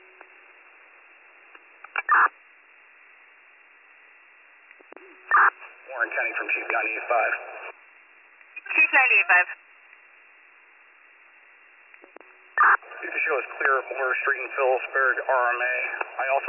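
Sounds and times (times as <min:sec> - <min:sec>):
radio dispatch paging tones: 0:02.0 - 0:02.3, 0:05.0 - 0:07.7, 0:12.6 - 0:16.4
speech: 0:02.1 - 0:02.4, 0:05.0 - 0:07.6, 0:08.8 - 0:09.6, 0:13.3 - 0:16.4.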